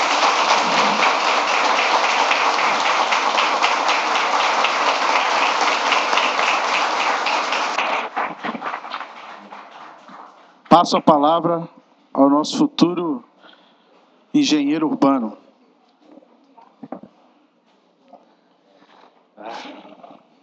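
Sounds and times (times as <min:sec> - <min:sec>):
audience applause: 0:00.0 - 0:11.0
speech: 0:10.8 - 0:13.3, 0:14.3 - 0:15.4.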